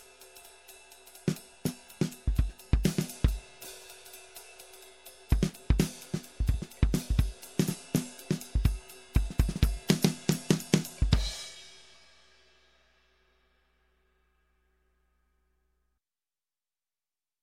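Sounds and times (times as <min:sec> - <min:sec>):
jazz drums bridge: 0:00.0 - 0:12.1.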